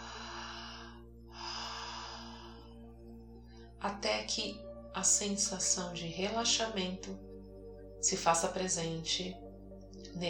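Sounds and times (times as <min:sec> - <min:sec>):
breath drawn in and let out through the mouth: 0:00.0 - 0:03.8
speech: 0:03.8 - 0:07.3, 0:08.0 - 0:09.4, 0:10.1 - 0:10.2.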